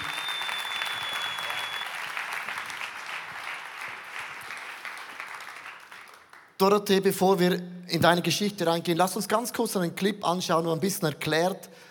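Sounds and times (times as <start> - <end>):
audience applause: 0.0 - 6.4
speech: 6.6 - 11.9.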